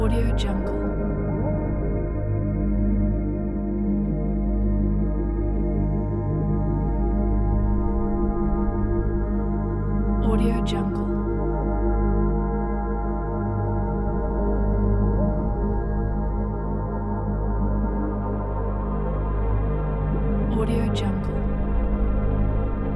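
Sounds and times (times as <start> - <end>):
binaural ambient deep meditation music: 0.0 - 22.9.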